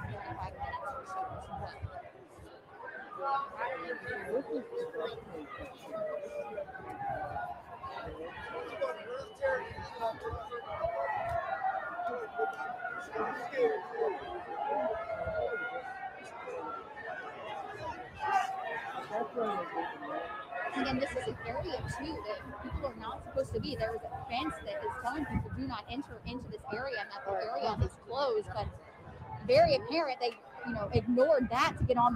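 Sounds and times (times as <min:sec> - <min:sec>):
crowd chatter outside the Capitol: 0:00.0 - 0:32.1
speech: 0:03.2 - 0:11.5, 0:12.1 - 0:15.4, 0:19.1 - 0:28.8, 0:29.5 - 0:32.1.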